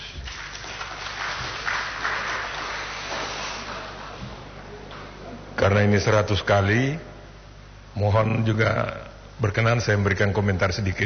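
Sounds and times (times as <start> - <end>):
audience applause: 0.0 - 4.4
speech: 5.6 - 7.1, 8.0 - 11.0.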